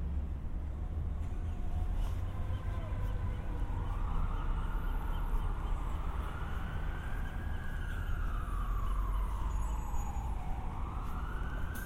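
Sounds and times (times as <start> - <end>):
traffic rumble on San Diego city streets: 0.0 - 11.8
siren wailing: 2.4 - 11.8.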